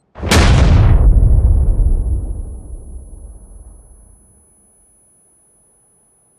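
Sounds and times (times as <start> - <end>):
explosion: 0.0 - 4.4.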